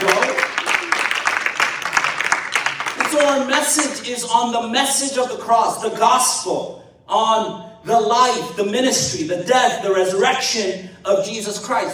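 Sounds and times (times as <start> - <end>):
audience applause: 0.0 - 4.0
speech: 3.2 - 11.9.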